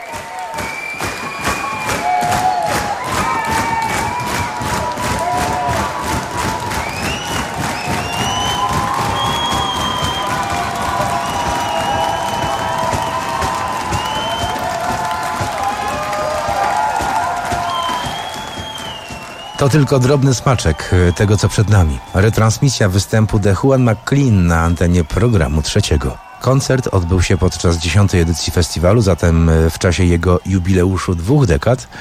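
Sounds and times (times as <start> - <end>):
concert audience cheering and applauding to demand an encore at a festival: 0.0 - 31.9
scattered shouts from the concert audience: 1.4 - 18.0
speech: 19.6 - 31.9.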